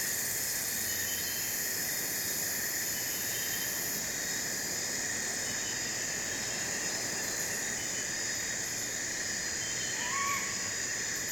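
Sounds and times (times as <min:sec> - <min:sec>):
jungle ambience: 0:00.0 - 0:11.3.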